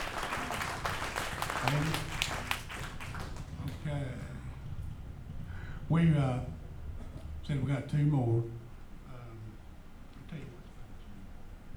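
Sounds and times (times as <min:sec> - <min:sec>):
audience clapping: 0:00.0 - 0:04.3
speech: 0:01.6 - 0:02.1, 0:05.9 - 0:06.6, 0:07.5 - 0:08.6.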